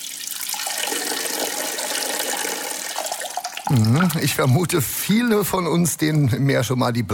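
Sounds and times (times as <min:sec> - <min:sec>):
urine trickling into water: 0:00.0 - 0:04.5
speech: 0:03.7 - 0:07.1.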